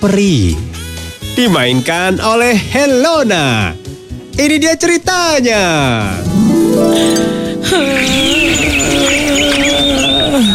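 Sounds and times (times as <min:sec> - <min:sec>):
speech: 0:00.0 - 0:00.7, 0:01.3 - 0:03.8, 0:04.4 - 0:09.0
birds chirping cheerfully in bright warbling calls: 0:06.9 - 0:10.5.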